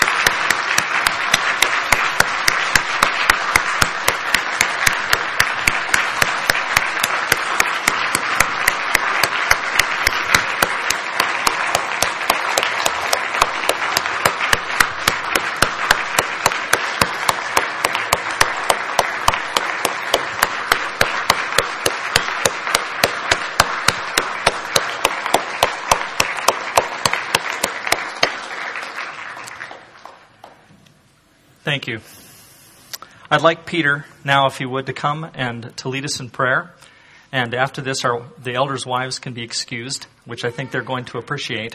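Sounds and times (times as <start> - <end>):
large crowd applause: 0.0 - 30.6
speech: 33.4 - 41.7.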